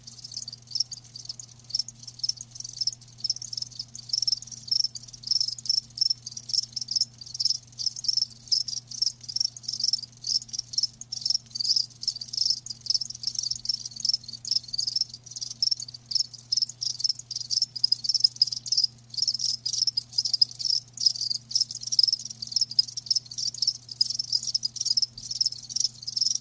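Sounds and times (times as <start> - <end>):
crickets chirping: 0.0 - 26.3
faint low hum: 0.0 - 26.3.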